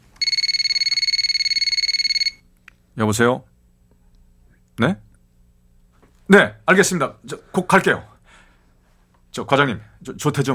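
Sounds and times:
telephone ringing with an electronic trill: 0.2s - 2.5s
speech: 3.0s - 3.5s, 4.8s - 5.0s, 6.3s - 8.1s, 9.3s - 10.5s.

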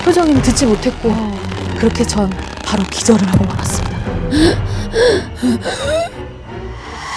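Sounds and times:
speech: 0.1s - 6.0s
person gasping for breath on waking: 4.3s - 6.2s.

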